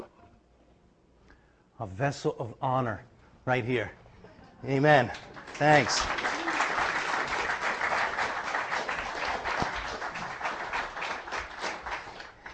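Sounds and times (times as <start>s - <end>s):
speech: 1.8s - 4.0s, 4.6s - 6.2s
crowd clapping: 5.0s - 12.5s.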